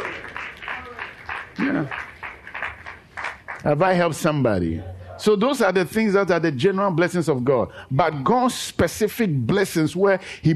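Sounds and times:
audience clapping: 0:00.0 - 0:04.3
speech: 0:01.6 - 0:02.1, 0:03.6 - 0:10.5.

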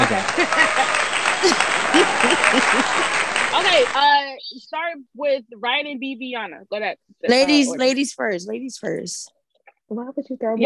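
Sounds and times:
laughter: 0:00.0 - 0:04.0
small group clapping: 0:00.0 - 0:04.2
voices murmuring and calling out: 0:00.0 - 0:05.7, 0:07.2 - 0:09.3
speech: 0:00.1 - 0:10.6.

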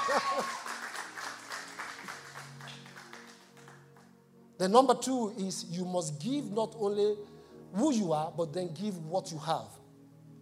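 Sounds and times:
audience applause: 0:00.0 - 0:04.0
speech: 0:04.6 - 0:09.8.

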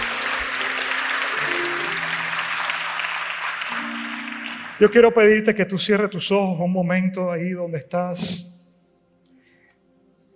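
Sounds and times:
audience applause: 0:00.0 - 0:05.6
speech: 0:04.8 - 0:08.5.

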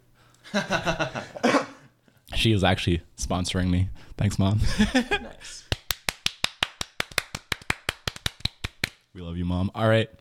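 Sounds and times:
speech: 0:00.5 - 0:01.2, 0:02.4 - 0:05.6, 0:09.4 - 0:10.2
clapping: 0:05.7 - 0:09.0.

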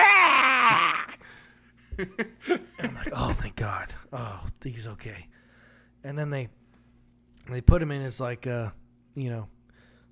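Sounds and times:
voice imitating a newborn baby wailing: 0:00.0 - 0:01.2
speech: 0:02.0 - 0:05.4, 0:06.0 - 0:06.6, 0:07.4 - 0:09.6.

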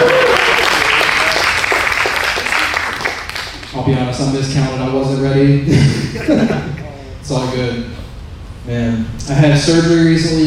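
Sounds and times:
crowd applause: 0:00.0 - 0:03.7
speech: 0:03.9 - 0:06.7, 0:07.3 - 0:08.0, 0:08.7 - 0:10.4
laughter: 0:05.7 - 0:06.9.

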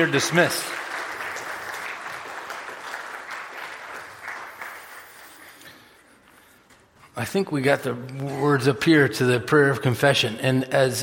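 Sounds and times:
speech: 0:00.0 - 0:00.8, 0:07.2 - 0:11.0
audience applause: 0:00.0 - 0:06.0.

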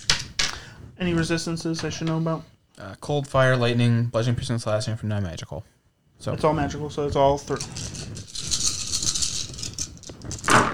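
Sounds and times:
speech: 0:01.0 - 0:08.0
dice rattling on a hard surface: 0:07.5 - 0:10.7.

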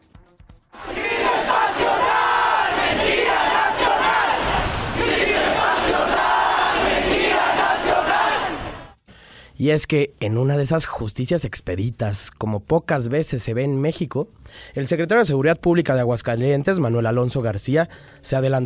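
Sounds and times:
protest crowd shouting for justice: 0:00.8 - 0:09.0
speech: 0:09.6 - 0:18.6.

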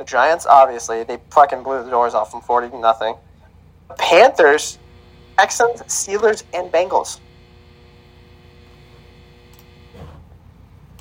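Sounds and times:
speech: 0:00.0 - 0:03.3, 0:03.9 - 0:04.8, 0:05.4 - 0:07.3
ice machine buzzing while refilling water: 0:04.0 - 0:10.4.

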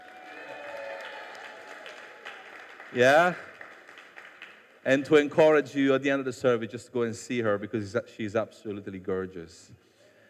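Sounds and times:
audience applause: 0:00.0 - 0:04.8
speech: 0:02.9 - 0:03.5, 0:04.8 - 0:09.9.

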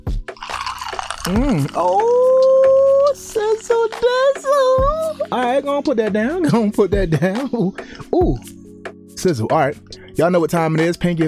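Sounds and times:
drink being poured into a glass: 0:00.4 - 0:04.4
speech: 0:01.3 - 0:02.4, 0:03.4 - 0:08.6, 0:09.2 - 0:11.2.

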